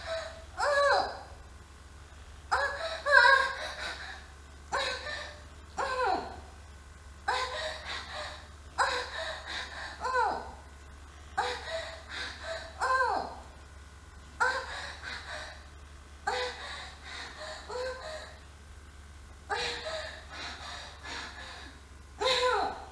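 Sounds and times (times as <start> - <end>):
young wife moaning wildly: 0.0 - 1.4, 2.5 - 6.5, 7.3 - 10.7, 11.4 - 13.6, 14.4 - 15.7, 16.3 - 18.4, 19.5 - 22.9.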